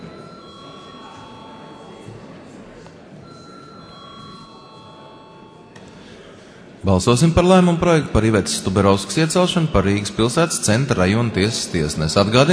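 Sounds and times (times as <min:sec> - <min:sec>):
low room murmur: 0:00.0 - 0:12.5
parliament chamber bell calling a vote: 0:00.1 - 0:02.1, 0:03.2 - 0:05.8
speech: 0:06.8 - 0:12.5.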